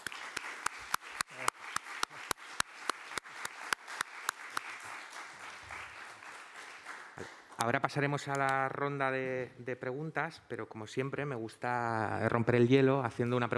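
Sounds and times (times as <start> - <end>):
audience applause: 0.0 - 7.6
speech: 7.2 - 13.5.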